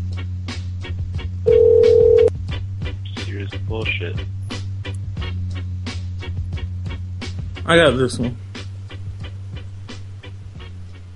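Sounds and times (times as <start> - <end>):
low hum: 0.0 - 11.1
telephone electronic tone: 1.5 - 2.3
speech: 3.5 - 4.5, 7.7 - 8.4.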